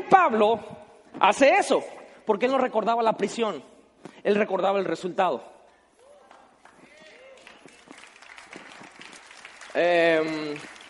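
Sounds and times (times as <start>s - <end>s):
speech: 0.1s - 5.5s, 9.8s - 10.7s
audience applause: 7.0s - 10.8s.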